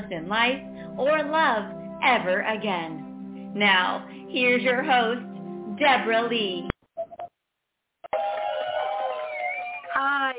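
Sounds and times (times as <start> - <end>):
speech: 0.1 - 6.7, 10.0 - 10.3
studio audience applause and cheering: 8.1 - 10.3.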